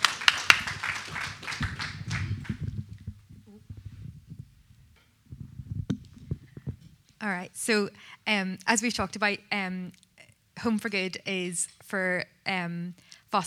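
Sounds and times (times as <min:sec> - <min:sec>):
audience clapping: 0:00.0 - 0:03.4
faint movement: 0:00.5 - 0:07.2
soft low thumps: 0:00.6 - 0:07.2
speech: 0:07.2 - 0:10.0, 0:10.6 - 0:13.4.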